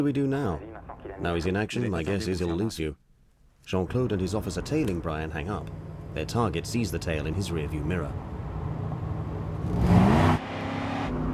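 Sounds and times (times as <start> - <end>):
speech: 0.0 - 3.0, 3.6 - 8.3
heavy traffic hum: 0.6 - 11.3
car engine accelerating through a red light: 4.2 - 11.3.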